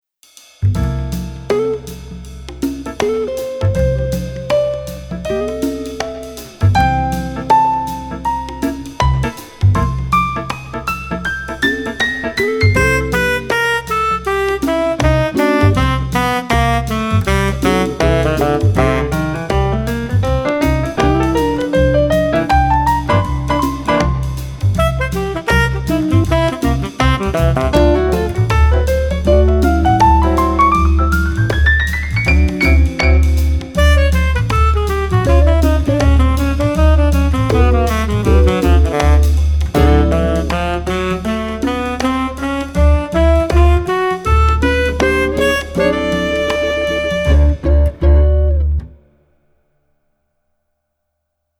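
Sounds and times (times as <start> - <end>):
instrumental music: 0.5 - 49.5.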